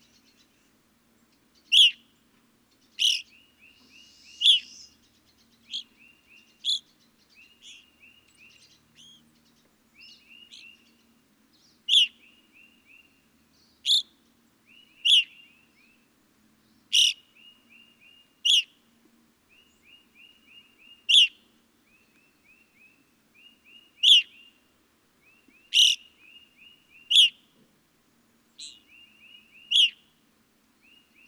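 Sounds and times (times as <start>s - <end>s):
Evening Grosbeak calling: 1.7s - 2.0s, 3.0s - 9.3s, 11.9s - 13.1s, 13.8s - 14.1s, 14.7s - 16.0s, 16.9s - 18.8s, 19.6s - 24.6s, 25.2s - 27.5s, 28.6s - 30.1s.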